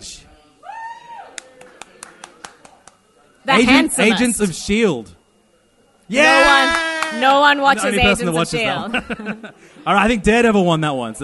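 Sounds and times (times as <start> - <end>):
audience clapping: 1.3 - 3.0, 6.4 - 7.3
speech: 3.4 - 5.2, 6.1 - 11.2
laughter: 7.9 - 10.2.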